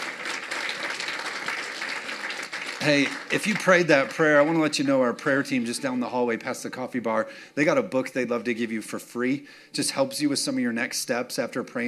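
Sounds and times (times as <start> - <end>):
audience applauding: 0.0 - 5.6
speech: 2.8 - 11.8.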